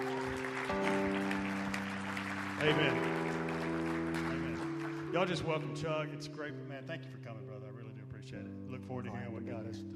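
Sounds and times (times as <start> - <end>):
audience applause: 0.0 - 5.7
speech: 2.6 - 3.2, 5.2 - 7.4, 8.2 - 9.9.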